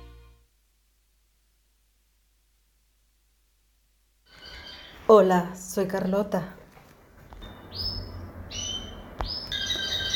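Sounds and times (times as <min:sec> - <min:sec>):
pet canary singing with chirps and a rapid trill: 0:04.3 - 0:05.2, 0:07.4 - 0:10.1
speech: 0:05.1 - 0:06.6.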